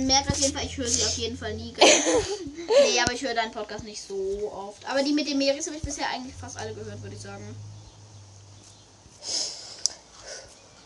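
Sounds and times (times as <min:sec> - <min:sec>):
speech: 0:00.0 - 0:07.7
laughter: 0:01.8 - 0:03.0
snorting sniffs through the nose: 0:09.1 - 0:10.6.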